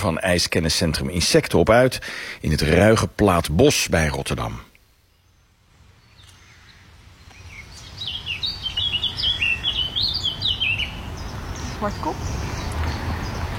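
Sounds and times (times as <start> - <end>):
speech: 0.0 - 4.7, 11.8 - 12.5
blackcap singing: 7.3 - 13.5.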